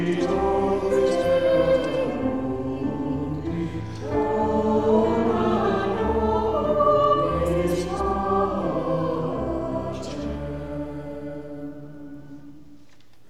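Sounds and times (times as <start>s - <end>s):
choir singing a sacred piece: 0.0s - 12.9s
piano: 0.0s - 13.2s.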